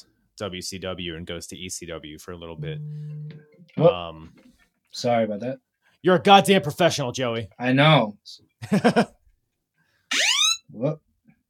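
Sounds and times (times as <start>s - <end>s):
speech: 0.0s - 9.2s, 10.7s - 11.0s
phone emergency alert tone: 2.6s - 3.8s, 10.1s - 10.6s.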